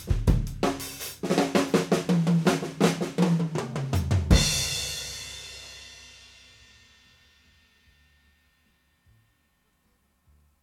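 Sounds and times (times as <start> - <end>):
raw drum test: 0.0 - 8.4.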